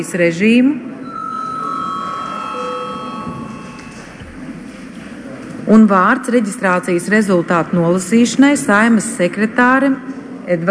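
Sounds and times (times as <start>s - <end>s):
speech: 0.0s - 1.0s, 5.7s - 10.6s
low murmur of room noise: 0.0s - 10.6s
parliament chamber electric bell ringing: 1.0s - 4.2s.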